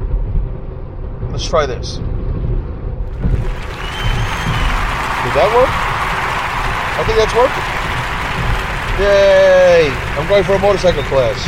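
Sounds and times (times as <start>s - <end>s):
speech: 1.4s - 2.1s, 5.3s - 5.9s, 7.0s - 7.8s, 9.0s - 11.4s
applause sound effect from clap button: 3.1s - 11.4s.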